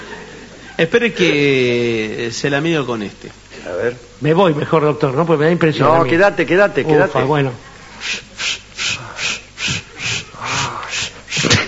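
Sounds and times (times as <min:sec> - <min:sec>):
speech: 0:00.8 - 0:08.6
man panting heavily: 0:08.0 - 0:11.6.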